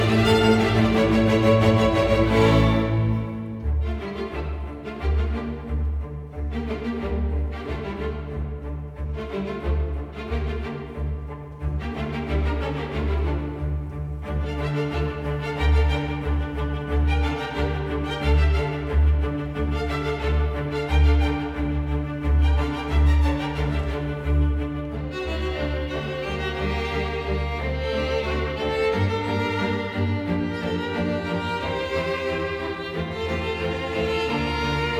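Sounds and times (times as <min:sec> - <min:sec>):
string orchestra playing: 0:00.0 - 0:34.9.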